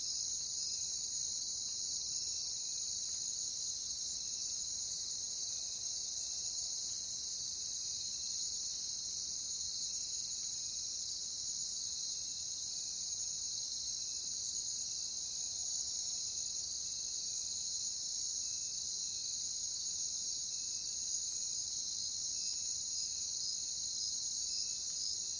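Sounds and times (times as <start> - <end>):
cricket chorus: 0.0 - 25.3.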